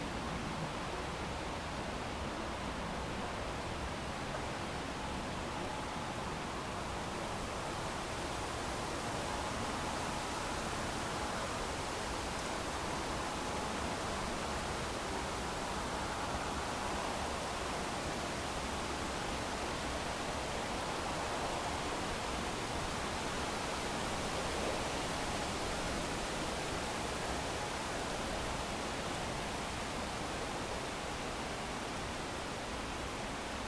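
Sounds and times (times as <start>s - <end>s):
old railway track ambience: 0.1s - 33.6s.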